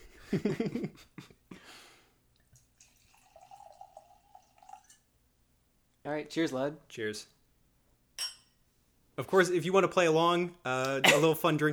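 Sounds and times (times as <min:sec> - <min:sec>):
speech: 0:00.3 - 0:01.2, 0:06.0 - 0:07.4, 0:09.2 - 0:11.7
drink pouring into a glass: 0:02.4 - 0:05.1.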